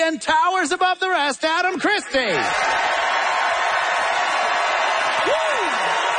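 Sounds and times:
speech: 0.1 - 2.9
audience cheering and applauding: 2.1 - 6.1.

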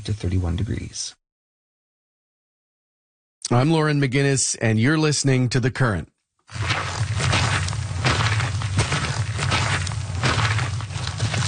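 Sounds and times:
speech: 0.0 - 1.2, 3.5 - 7.0
boots walking on a trail: 6.5 - 11.4.

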